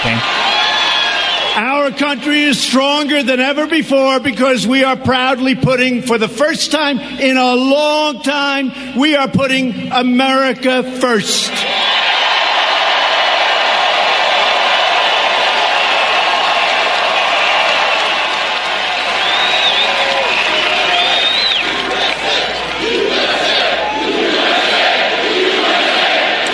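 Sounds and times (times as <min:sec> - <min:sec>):
large rally crowd cheering: 0:00.0 - 0:04.2, 0:11.5 - 0:26.5
speech: 0:01.6 - 0:12.0.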